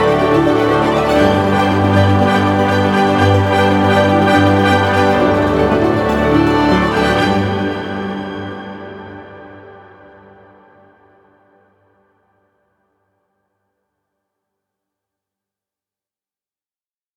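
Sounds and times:
drive ambient music: 0.0s - 12.4s.

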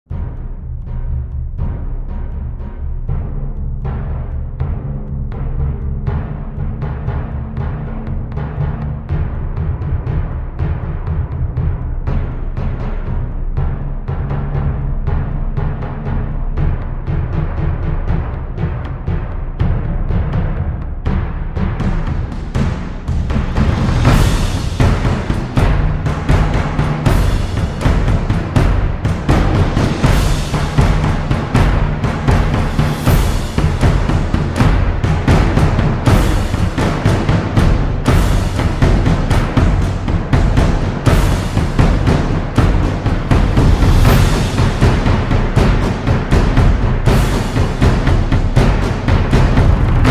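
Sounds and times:
drums: 0.0s - 50.1s.

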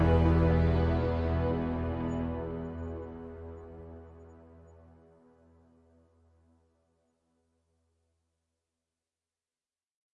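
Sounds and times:
gloomy ambient music: 0.0s - 6.5s.

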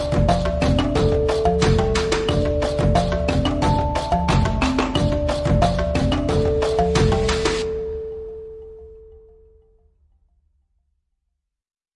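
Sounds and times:
African metal music: 0.0s - 8.9s.

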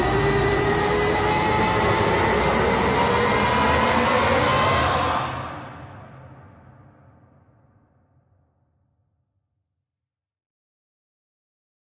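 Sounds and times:
violence rising tension effect: 0.0s - 7.3s.

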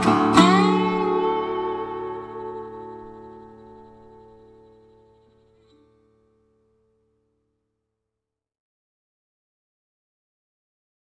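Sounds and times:
country blues song: 0.0s - 4.7s.

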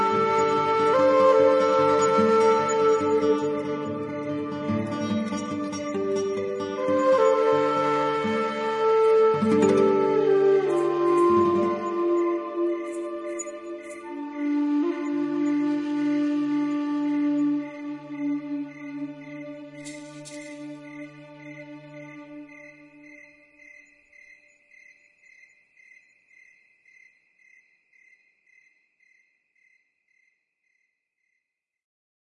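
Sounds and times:
Native American flute: 0.0s - 24.0s
crickets: 0.0s - 31.5s.

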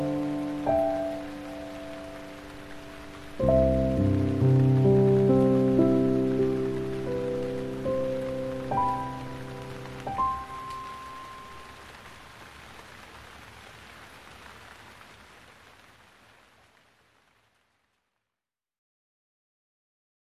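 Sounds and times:
piano: 0.0s - 12.1s
rain: 0.0s - 18.3s.

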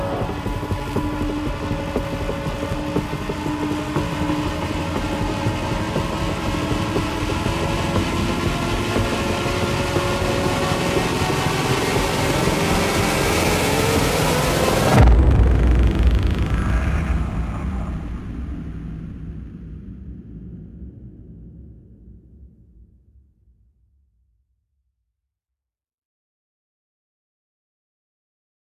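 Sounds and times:
percussion: 0.0s - 18.5s
razor line synths: 0.0s - 19.6s.

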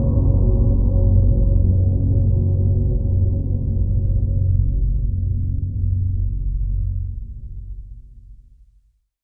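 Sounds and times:
drone: 0.0s - 7.0s.

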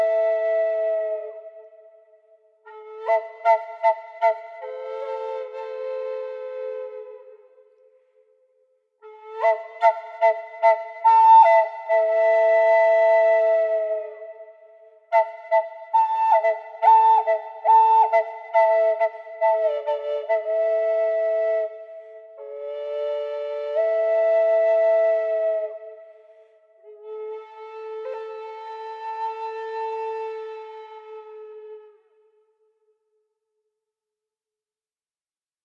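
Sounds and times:
flute: 0.0s - 32.9s.

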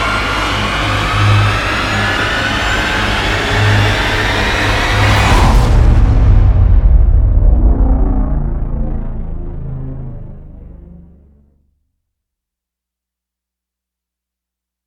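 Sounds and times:
rising sound: 0.0s - 11.6s.

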